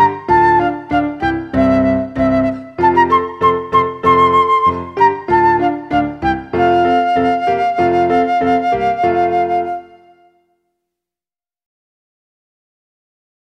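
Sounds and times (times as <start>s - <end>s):
piano accompaniment: 0.0s - 10.4s
solo flute: 0.0s - 10.6s.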